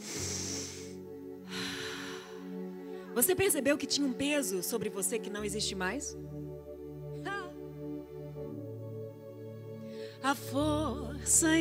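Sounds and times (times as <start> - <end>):
deep breath: 0.0 - 3.1
soft sustained music: 0.0 - 11.5
speech: 3.2 - 6.5, 10.3 - 11.5.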